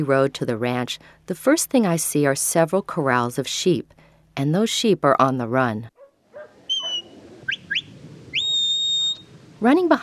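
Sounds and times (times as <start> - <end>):
speech: 0.0 - 5.9, 9.6 - 10.0
sharp high-pitched sheepdog herding whistles: 6.7 - 9.3.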